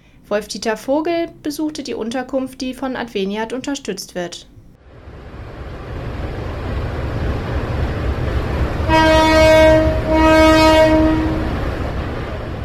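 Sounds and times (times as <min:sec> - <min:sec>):
speech: 0:00.3 - 0:04.5
freight train rumbling: 0:04.9 - 0:12.6
freight train horn blasts: 0:08.8 - 0:11.6.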